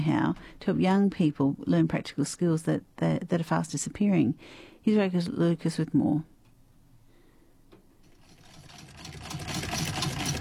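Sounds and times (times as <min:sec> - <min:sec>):
speech: 0:00.0 - 0:06.3
very old hand-cranked sewing machine clattering: 0:08.0 - 0:10.3.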